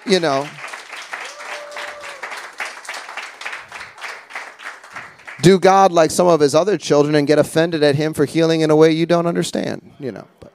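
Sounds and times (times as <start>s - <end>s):
speech: 0.0s - 0.6s, 5.4s - 10.4s
congregation clapping hands during a Bride Ministries healing service: 0.0s - 5.9s.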